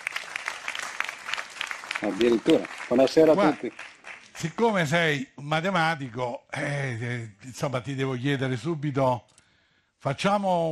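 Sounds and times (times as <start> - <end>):
audience applause: 0.0 - 4.4
speech: 2.0 - 9.3, 10.0 - 10.6.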